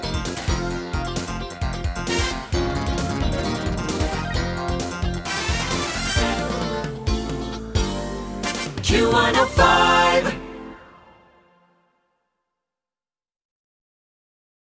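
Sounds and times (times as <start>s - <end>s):
jingle: 0.0s - 11.8s.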